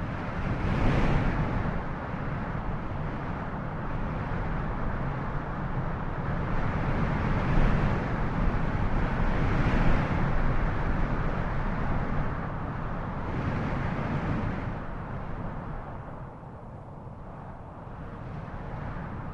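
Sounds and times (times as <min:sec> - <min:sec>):
strong gusting mountain wind: 0:00.0 - 0:19.3.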